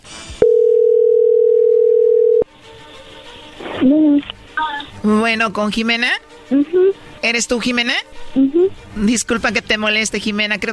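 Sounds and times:
telephone dial tone: 0.4s - 2.4s
speech: 5.0s - 10.7s.

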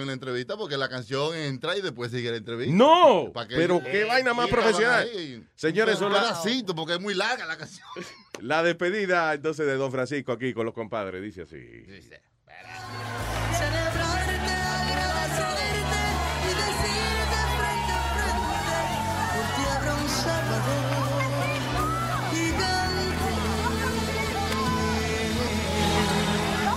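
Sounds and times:
speech: 0.0s - 13.9s
laughter: 7.4s - 8.4s, 12.6s - 26.7s
crowd of fans screaming: 12.6s - 26.7s.

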